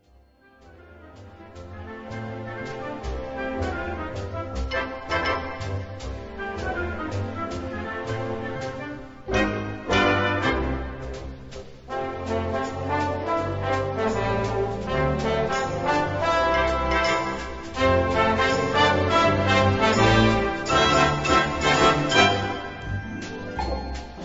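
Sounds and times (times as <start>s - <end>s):
orchestra playing game music in concert: 0.4s - 24.2s.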